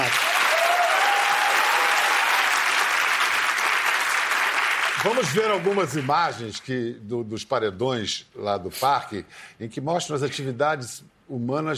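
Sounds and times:
audience applause: 0:00.0 - 0:06.4
speech: 0:05.0 - 0:11.7.

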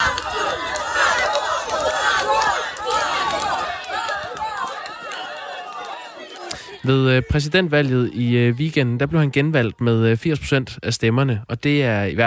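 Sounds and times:
protest demonstration crowd chanting: 0:00.0 - 0:07.7
speech: 0:06.8 - 0:12.2.

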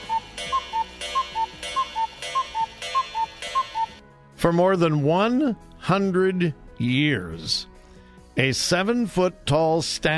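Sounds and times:
cuckoo clock sound effect calls: 0:00.0 - 0:04.0
speech: 0:04.4 - 0:07.7, 0:08.4 - 0:10.1.

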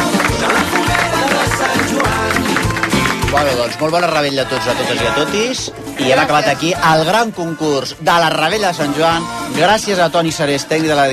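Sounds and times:
audience applause: 0:00.0 - 0:05.1
speech: 0:03.4 - 0:11.1.

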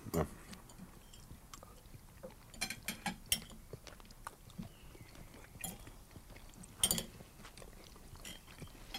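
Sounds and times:
chewing grilled salmon with crispy skin: 0:00.4 - 0:08.9.

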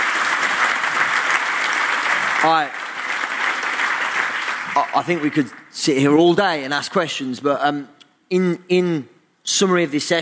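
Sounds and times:
audience applause: 0:00.0 - 0:05.7
speech: 0:02.4 - 0:02.8, 0:04.8 - 0:10.2.

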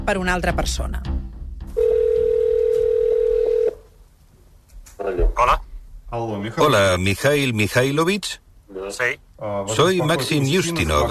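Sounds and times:
speech: 0:00.1 - 0:01.2, 0:05.0 - 0:11.0
telephone dial tone: 0:01.8 - 0:03.8.

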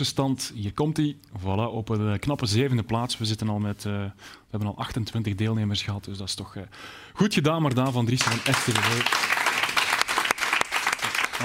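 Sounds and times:
speech: 0:00.0 - 0:09.3
audience applause: 0:08.2 - 0:11.4.

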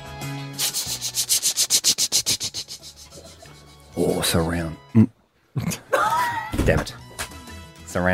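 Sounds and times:
voice imitating a helicopter: 0:00.7 - 0:03.6
speech: 0:04.0 - 0:05.8, 0:06.7 - 0:07.0, 0:07.9 - 0:08.1.

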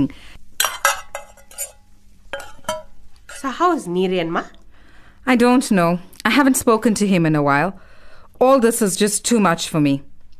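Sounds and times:
speech: 0:00.0 - 0:00.3, 0:03.5 - 0:04.6, 0:05.2 - 0:10.1
dishes and cutlery clinking while food is served onto plates: 0:00.6 - 0:03.5.

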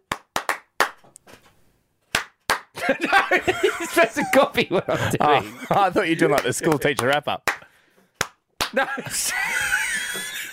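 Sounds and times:
sharp hand claps: 0:00.0 - 0:01.1, 0:02.1 - 0:02.8, 0:06.2 - 0:08.9
laughter: 0:02.8 - 0:07.0, 0:08.7 - 0:10.5
speech: 0:02.8 - 0:07.5, 0:08.7 - 0:09.7.

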